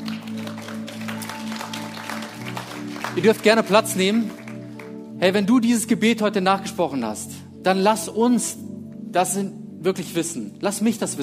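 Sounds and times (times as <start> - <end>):
crowd applause: 0.0 - 5.0
speech: 3.2 - 4.4, 5.2 - 8.6, 9.2 - 11.2.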